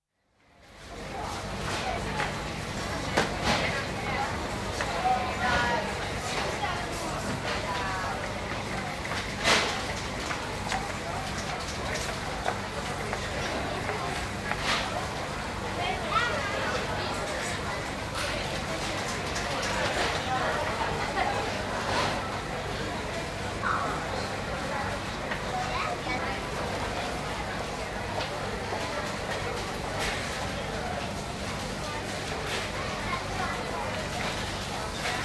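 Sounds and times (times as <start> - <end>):
shopping trolley noise in a supermarket: 0.7 - 35.2
people talking in a busy supermarket in Budapest: 0.8 - 35.2.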